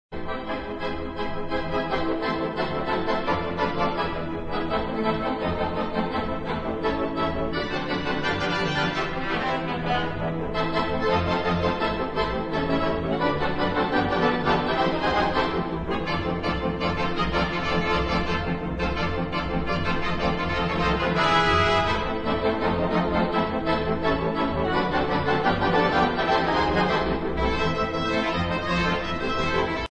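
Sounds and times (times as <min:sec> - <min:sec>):
theatre organ: 0:00.2 - 0:29.8.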